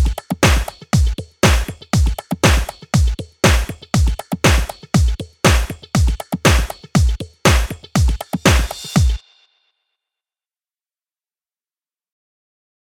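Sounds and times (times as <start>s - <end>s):
beats loop track at 120 bpm: 0.0s - 9.2s.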